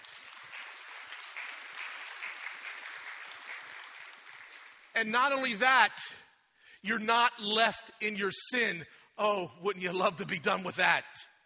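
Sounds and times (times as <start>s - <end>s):
audience clapping: 0.0s - 5.8s
speech: 5.0s - 6.2s, 6.8s - 11.3s.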